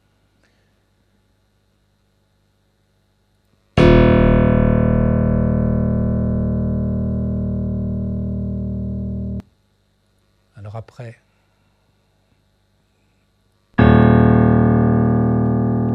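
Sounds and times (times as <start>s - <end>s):
single low simulated piano note: 3.8s - 9.4s, 13.8s - 15.9s
speech: 11.0s - 11.2s.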